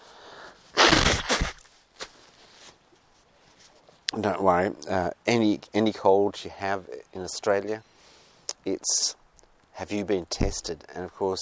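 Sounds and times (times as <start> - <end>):
person blowing nose: 0.7 - 1.6
speech: 4.2 - 7.9, 8.6 - 9.2, 9.8 - 11.4.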